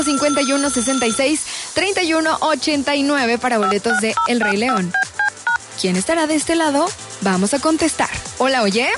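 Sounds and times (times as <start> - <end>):
telephone ringing on a radio call-in contest line: 0.0 - 1.3, 3.6 - 5.6
speech: 0.0 - 5.1, 5.8 - 8.9.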